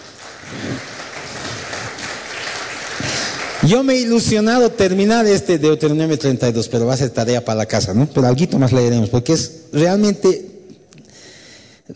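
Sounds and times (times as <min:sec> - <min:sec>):
room full of people clapping together: 0:00.0 - 0:04.2
speech: 0:03.6 - 0:10.5.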